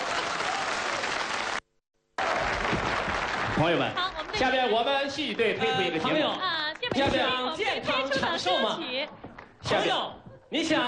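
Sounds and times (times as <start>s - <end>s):
crowd applause: 0.0s - 1.6s, 2.2s - 4.8s
speech: 3.6s - 10.8s.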